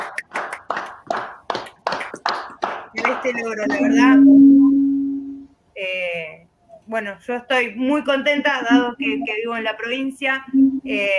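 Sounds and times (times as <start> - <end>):
applause: 0.0 - 3.4
speech: 3.0 - 4.7, 6.9 - 11.1.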